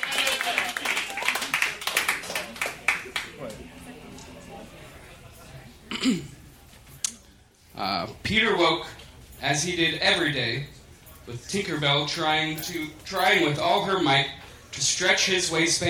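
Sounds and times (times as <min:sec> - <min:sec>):
audience clapping: 0:00.0 - 0:03.7
speech: 0:07.8 - 0:15.8.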